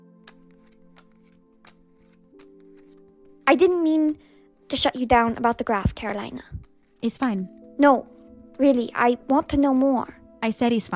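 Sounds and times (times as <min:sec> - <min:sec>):
playing cards being flipped over during a card game: 0:00.0 - 0:03.9, 0:05.1 - 0:08.3
speech: 0:03.5 - 0:10.9.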